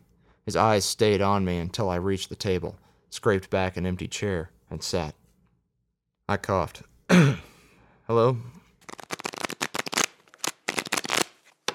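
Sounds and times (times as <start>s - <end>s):
speech: 0.4s - 5.2s, 6.3s - 7.5s, 8.1s - 8.6s
playing cards being dealt across a table: 8.8s - 11.7s.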